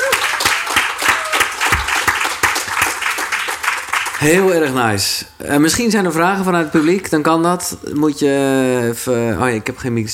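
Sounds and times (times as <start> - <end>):
audience applause: 0.0 - 4.4
speech: 4.2 - 10.1.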